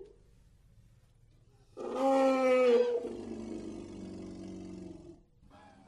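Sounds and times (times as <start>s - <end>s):
elephant growling: 1.8s - 5.8s.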